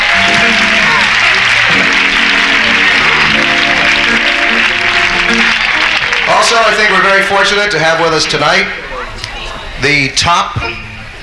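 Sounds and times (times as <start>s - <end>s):
audience applause: 0.0s - 8.5s
speech: 6.6s - 8.8s, 9.8s - 10.8s.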